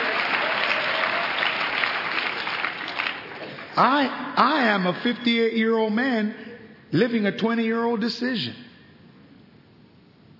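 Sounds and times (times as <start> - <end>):
audience clapping: 0.0 - 3.9
speech: 3.8 - 8.6.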